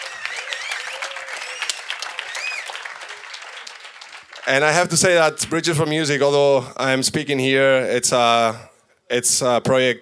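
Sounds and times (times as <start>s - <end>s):
audience applause: 0.0s - 5.2s
speech: 4.5s - 10.0s.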